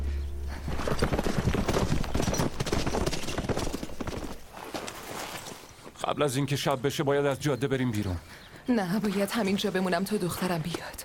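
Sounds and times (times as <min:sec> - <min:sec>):
horses' hooves clattering on a road through the kingdom of Mercia: 0:00.6 - 0:05.7
speech: 0:06.1 - 0:11.0.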